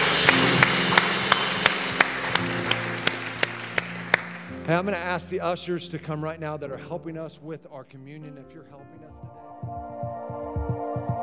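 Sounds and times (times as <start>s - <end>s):
audience applause: 0.0s - 5.0s
speech: 4.7s - 9.9s.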